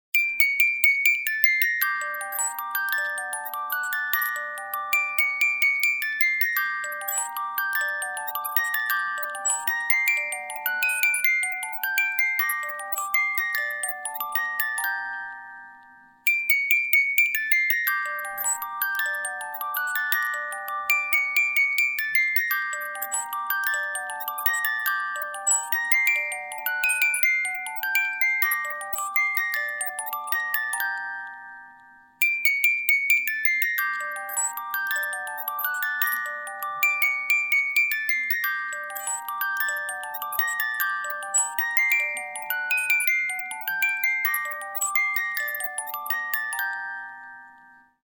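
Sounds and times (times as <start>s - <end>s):
music box melody: 0.2s - 48.1s.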